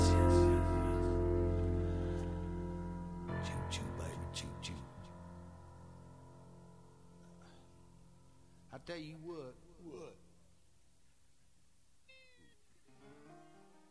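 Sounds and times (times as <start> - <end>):
boogie woogie music: 0.0 - 4.2.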